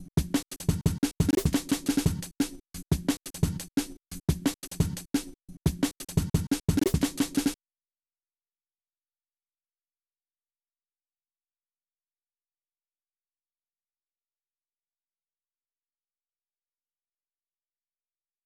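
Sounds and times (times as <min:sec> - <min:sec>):
old-school breakbeat drums: 0:00.0 - 0:07.6.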